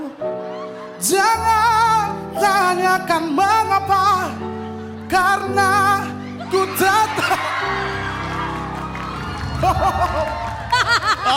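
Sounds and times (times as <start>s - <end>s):
laughter: 0.0s - 11.3s
speech: 1.0s - 1.7s
audience applause: 6.4s - 11.3s.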